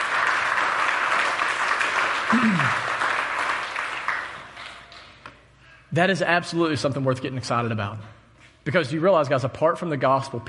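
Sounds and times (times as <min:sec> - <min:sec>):
audience clapping: 0:00.0 - 0:05.4
speech: 0:02.3 - 0:02.9, 0:06.0 - 0:10.4.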